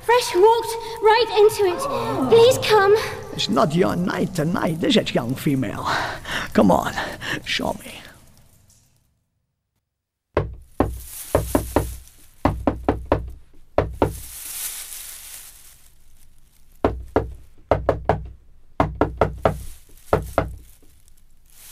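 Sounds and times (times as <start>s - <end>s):
speech: 0.2s - 8.0s
secret knock on a door: 10.4s - 14.2s, 16.8s - 19.6s.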